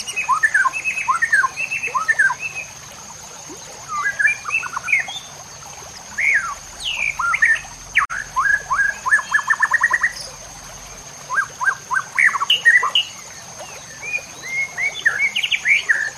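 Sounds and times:
White-rumped shama song of slurred whistles and chattering notes: 0.0 - 2.7, 3.9 - 5.2, 6.2 - 10.3, 11.3 - 13.1, 13.9 - 16.1.

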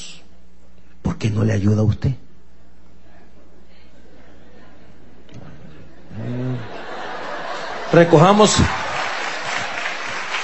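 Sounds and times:
speech: 1.2 - 2.3, 7.9 - 8.8
laughter: 4.0 - 10.4
crowd clapping: 7.1 - 10.4.

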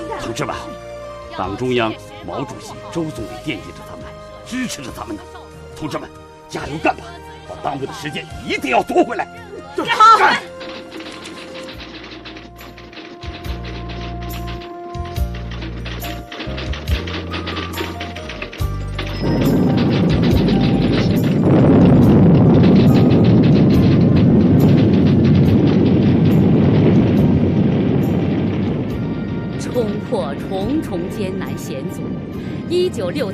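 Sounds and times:
speech: 0.2 - 10.5, 30.7 - 33.3
low stepped musical notes: 10.5 - 33.3
China's first hydrogen bomb exploding at Lop Nur: 19.2 - 33.3.

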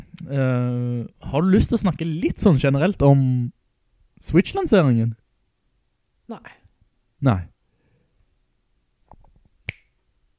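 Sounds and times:
speech: 0.3 - 3.6, 4.2 - 5.2, 6.3 - 6.6, 7.2 - 7.5
finger snap: 9.6 - 10.0.

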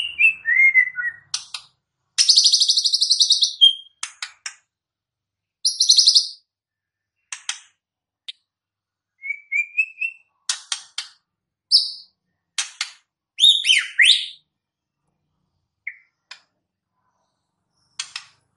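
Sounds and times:
white-rumped shama song: 0.0 - 1.4, 2.2 - 4.0, 5.6 - 6.4, 9.1 - 10.4, 11.7 - 12.1, 13.4 - 14.5, 15.8 - 16.2.

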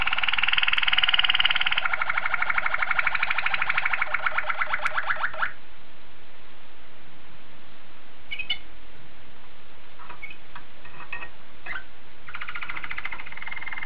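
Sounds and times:
Oriental magpie-robin song: 0.0 - 5.6, 8.3 - 8.7, 11.6 - 13.8.

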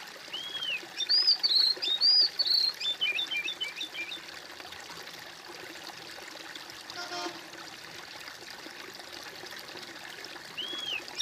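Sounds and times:
bird whistling song: 0.3 - 4.2, 10.6 - 11.2.

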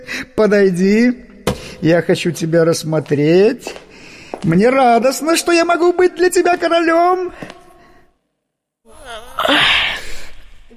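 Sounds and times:
speech: 0.1 - 3.8, 4.4 - 7.6
yawn: 8.9 - 10.7.

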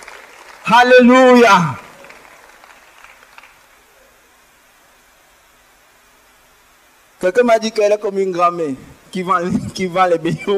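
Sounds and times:
audience applauding: 0.0 - 3.9
speech: 0.7 - 1.8, 7.2 - 10.5.

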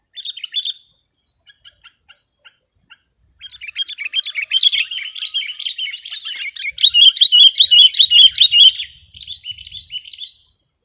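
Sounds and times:
sooty-headed bulbul singing: 0.0 - 10.8.

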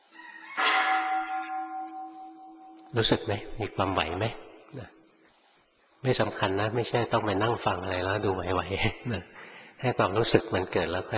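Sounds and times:
bell ringing: 0.2 - 3.2
speech: 2.9 - 5.0, 6.0 - 11.1.

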